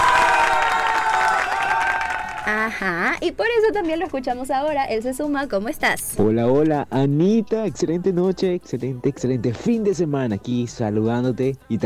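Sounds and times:
high cheers and whistles: 0:00.0 - 0:02.6
crowd applauding: 0:00.0 - 0:03.1
speech: 0:02.5 - 0:11.8.

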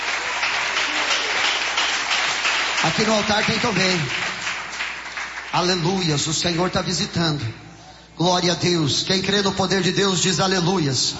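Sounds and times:
church congregation clapping during a lively service: 0:00.0 - 0:06.9
speech: 0:02.8 - 0:04.3, 0:05.5 - 0:07.6, 0:08.2 - 0:11.1.

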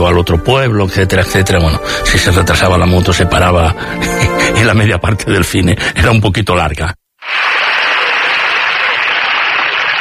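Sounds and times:
speech: 0:00.0 - 0:07.5
audience applause: 0:07.2 - 0:09.9.

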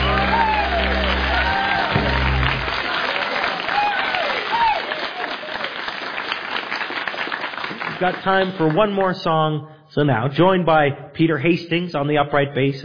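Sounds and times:
crowd cheering and whooping at a live music show: 0:00.0 - 0:05.8
audience applause for the band at a live music show: 0:00.0 - 0:09.4
speech: 0:08.0 - 0:12.8.

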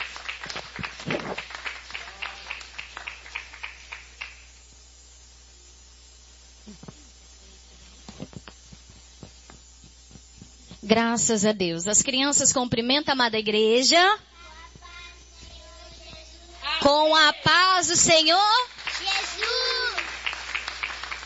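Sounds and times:
audience applauding in a roomy hall: 0:00.0 - 0:04.5, 0:18.7 - 0:21.2
speech: 0:10.9 - 0:14.3, 0:16.9 - 0:18.7.

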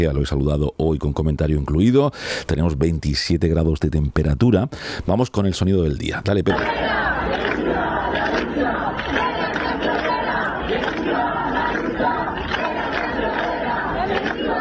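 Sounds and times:
speech: 0:00.0 - 0:09.2
street protest crowd chanting against evictions and housing prices in Murcia: 0:06.3 - 0:14.5.

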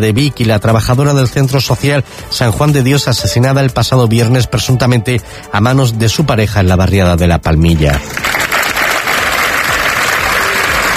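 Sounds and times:
speech: 0:00.0 - 0:08.4
applause: 0:08.0 - 0:10.9.

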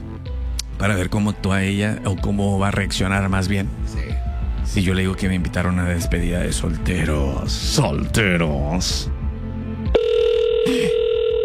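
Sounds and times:
speech: 0:00.8 - 0:09.2
telephone ringing: 0:09.9 - 0:11.4.

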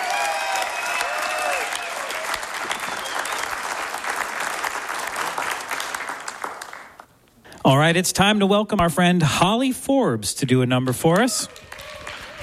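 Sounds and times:
audience clapping at a Mountain Stage live show: 0:00.0 - 0:07.2, 0:11.1 - 0:12.4
audience whistles: 0:02.7 - 0:03.6
speech: 0:07.7 - 0:11.6.

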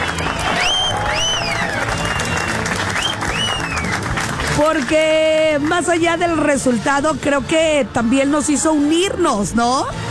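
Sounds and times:
applause: 0:00.0 - 0:05.9
speech: 0:04.6 - 0:10.0.

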